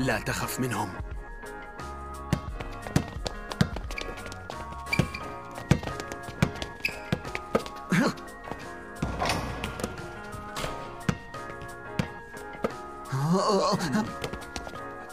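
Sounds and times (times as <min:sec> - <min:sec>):
speech: 0:00.0 - 0:01.1, 0:13.5 - 0:14.2
basketball being passed and bounced: 0:02.3 - 0:13.1, 0:14.0 - 0:15.1.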